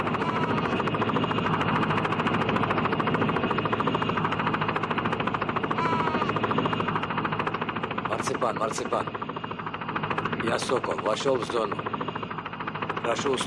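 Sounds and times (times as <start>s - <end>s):
small passenger helicopter rotor blades chopping: 0.0s - 13.4s
speech: 8.4s - 9.2s, 10.4s - 11.8s, 13.0s - 13.4s.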